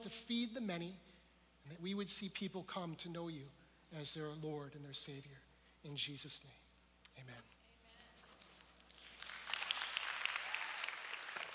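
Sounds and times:
speech: 0.0 - 6.6, 7.2 - 7.6
audience applause: 9.0 - 11.5.

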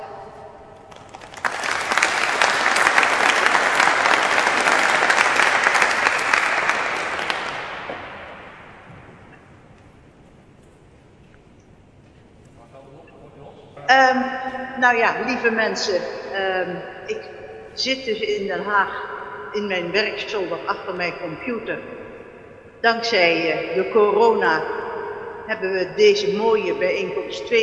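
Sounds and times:
warm audience applause: 0.8 - 9.0
speech: 14.8 - 22.1, 22.8 - 24.8, 25.5 - 27.6.

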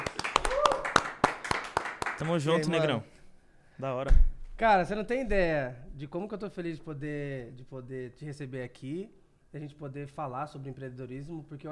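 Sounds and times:
clapping applause: 0.0 - 2.7
speech: 2.2 - 3.1, 3.8 - 11.7.

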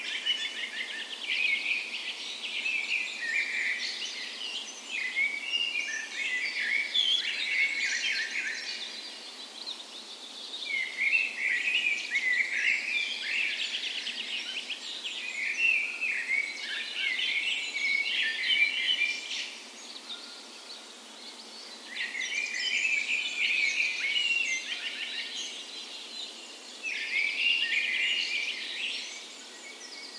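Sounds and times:
dawn chorus birds: 0.0 - 30.1.

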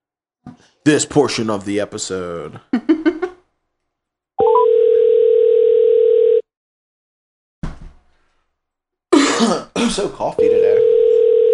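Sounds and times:
speech: 0.6 - 3.0, 9.9 - 10.7
laughter: 2.7 - 3.4
telephone dial tone placing a call: 4.4 - 6.4, 10.9 - 11.5.

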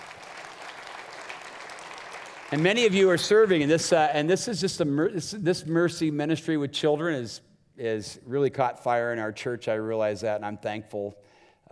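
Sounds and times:
audience clapping: 0.0 - 3.7
speech: 2.5 - 11.7.

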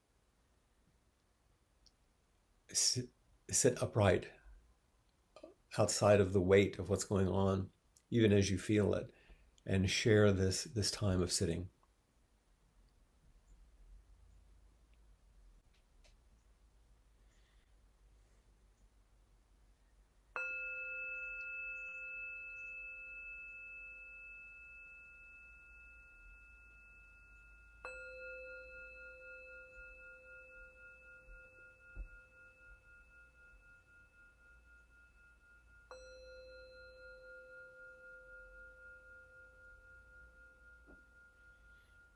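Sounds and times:
speech: 2.7 - 4.4, 5.7 - 11.8
meditation bell ringing: 20.3 - 42.1.

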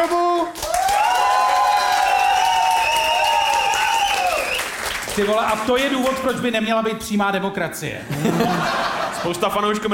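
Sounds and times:
audience applause: 0.6 - 6.2
crowd whooping and cheering: 0.7 - 4.8
speech: 5.2 - 9.9
laughter: 8.0 - 9.8.

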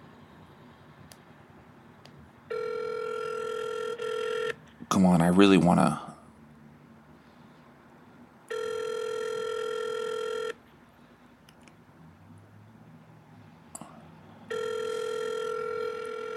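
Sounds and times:
long buzzing ringback tones of an unanswered phone call: 2.5 - 4.6, 8.5 - 10.6, 14.5 - 16.3
speech: 5.0 - 6.0.

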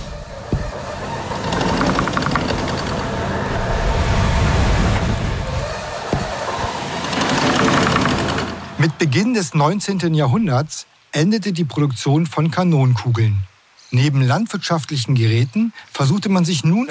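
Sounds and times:
foundry blower working air for the furnaces: 0.0 - 3.4, 4.2 - 8.8
speech: 8.8 - 16.8.

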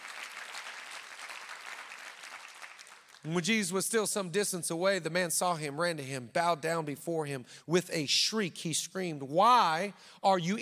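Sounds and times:
audience clapping: 0.0 - 3.4
speech: 3.2 - 10.6.

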